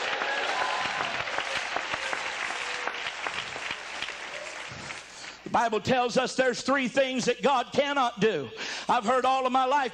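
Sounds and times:
audience clapping hands: 0:00.0 - 0:05.5
speech: 0:05.5 - 0:09.9.

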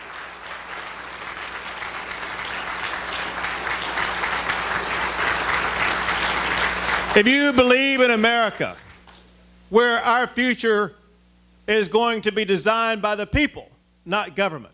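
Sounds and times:
audience applause: 0:00.0 - 0:09.2
speech: 0:07.2 - 0:08.9, 0:09.7 - 0:11.0, 0:11.7 - 0:14.7.

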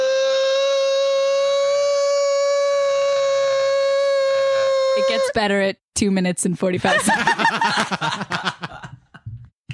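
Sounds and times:
voice imitating a whistling tea kettle: 0:00.1 - 0:05.4
speech: 0:05.2 - 0:08.7
laughter: 0:06.8 - 0:09.4.

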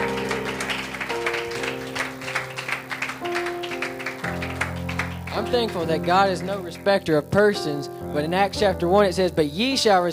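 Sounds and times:
audience clapping: 0:00.0 - 0:07.0
sustained organ chords: 0:00.0 - 0:10.1
speech: 0:05.4 - 0:10.1.

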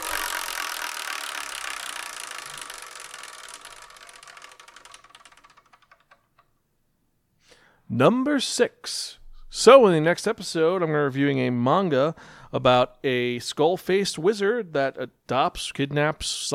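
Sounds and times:
Wheel of Manga prize wheel pointer ratcheting: 0:00.0 - 0:06.5
speech: 0:07.9 - 0:16.5.

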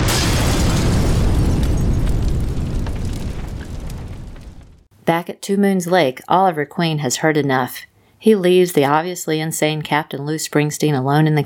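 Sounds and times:
plane crashing into a mountain: 0:00.0 - 0:04.9
plane exploding: 0:00.0 - 0:04.9
speech: 0:05.1 - 0:11.4.

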